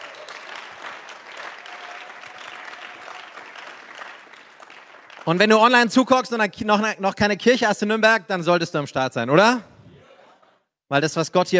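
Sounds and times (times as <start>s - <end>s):
audience applause: 0.0s - 5.5s
speech: 5.2s - 9.7s, 10.9s - 11.5s.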